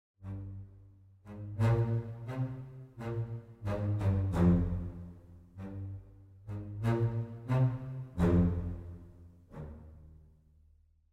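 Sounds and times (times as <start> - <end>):
double basses playing fast spiccato: 1.3 - 10.1.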